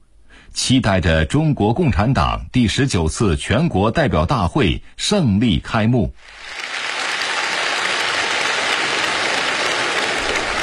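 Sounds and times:
speech: 0.6 - 6.6
large assembly applauding at a national congress opening in a great hall: 6.2 - 10.6.

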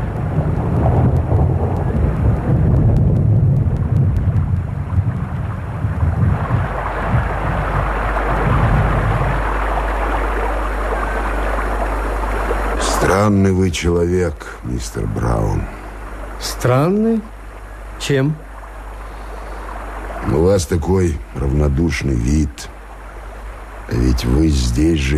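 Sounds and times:
thunderstorm with heavy downpour: 0.0 - 13.1
speech: 13.2 - 15.8, 16.4 - 17.4, 18.0 - 18.5, 20.3 - 22.7, 23.9 - 25.1.

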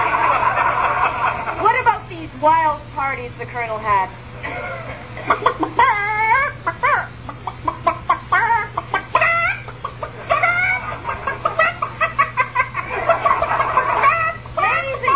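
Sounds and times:
laughter: 0.0 - 1.9, 4.4 - 15.1
speech: 2.4 - 4.6
hen clucking and squawking: 5.2 - 15.1.

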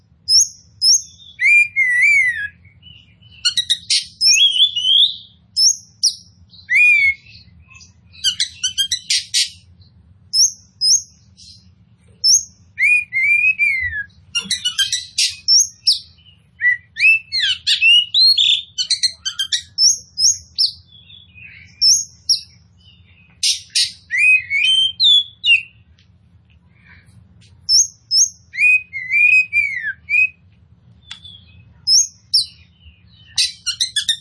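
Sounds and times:
Oriental magpie-robin singing: 0.0 - 26.0, 26.7 - 34.1.

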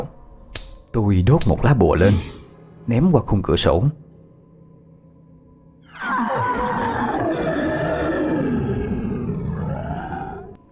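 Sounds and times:
speech: 0.9 - 4.0
demon shrieking horribly: 5.9 - 10.6.

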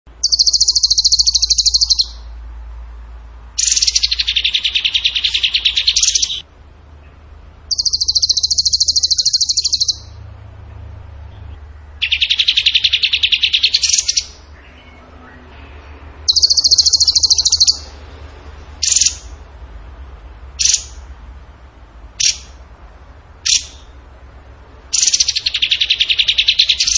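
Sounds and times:
bird singing trills: 0.1 - 2.4, 3.6 - 18.0, 18.8 - 19.4, 20.6 - 21.1, 22.2 - 22.6, 23.4 - 24.0, 24.9 - 26.9.

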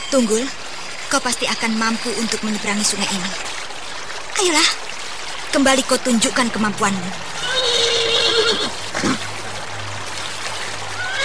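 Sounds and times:
speech: 0.1 - 3.6, 4.4 - 4.8, 5.5 - 7.3
horse neighing before leaping across river: 7.4 - 9.2, 11.0 - 11.2.

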